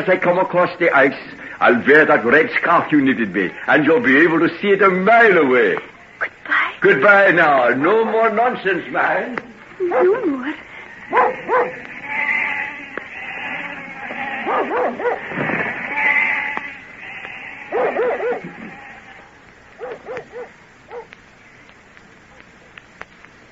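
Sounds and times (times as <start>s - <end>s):
speech: 0.0s - 11.9s
dog barking: 9.8s - 10.2s, 11.1s - 11.9s, 14.3s - 15.3s, 17.7s - 18.7s, 19.8s - 21.2s
flock of sheep bleating while being driven away: 10.9s - 21.0s.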